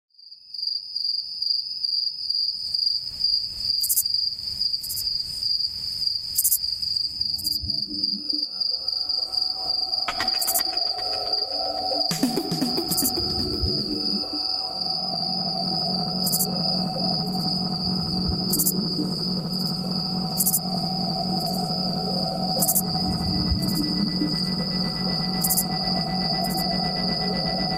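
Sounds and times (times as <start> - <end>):
tropical mystery music: 7.2 - 27.7.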